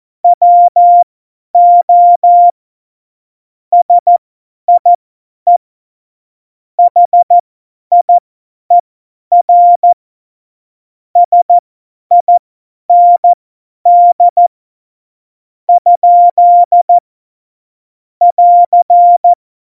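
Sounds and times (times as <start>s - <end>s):
CW Morse code beeps: 0.4s - 1.0s, 1.6s - 2.5s, 3.8s - 4.2s, 6.8s - 8.1s, 8.7s - 10.0s, 11.2s - 14.5s, 15.7s - 17.0s, 18.2s - 19.4s.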